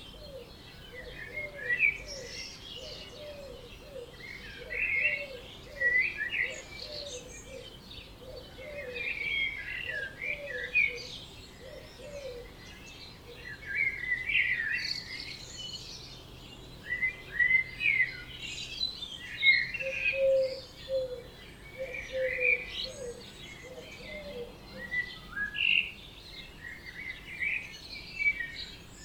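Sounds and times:
birds chirping at dawn: 0:00.0 - 0:29.0
quiet hiss: 0:00.0 - 0:29.0
low cooing: 0:00.1 - 0:12.5, 0:19.8 - 0:21.2, 0:21.8 - 0:25.0.

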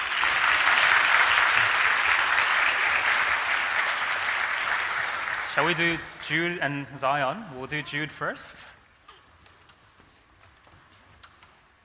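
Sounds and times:
audience clapping: 0:00.0 - 0:06.6
speech: 0:05.6 - 0:08.8.

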